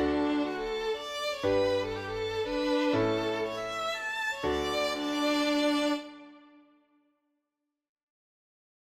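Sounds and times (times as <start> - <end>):
Swedish polska folk tune: 0.0 - 6.3.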